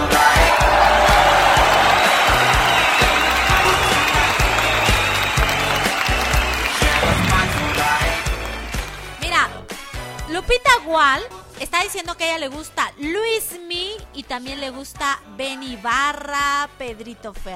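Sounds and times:
audience applause: 0:00.1 - 0:09.2
speech: 0:11.0 - 0:17.5.

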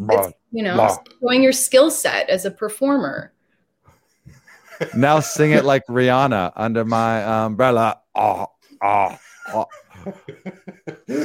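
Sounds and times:
person burping vowels: 0:00.0 - 0:01.0, 0:07.9 - 0:10.2
speech: 0:00.0 - 0:03.4, 0:04.8 - 0:11.2
laughter: 0:04.3 - 0:06.0, 0:08.8 - 0:11.2.

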